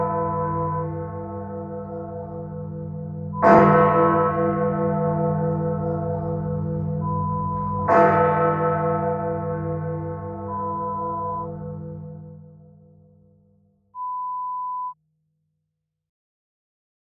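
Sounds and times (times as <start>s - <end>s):
clock tower bell chiming: 0.0s - 12.4s.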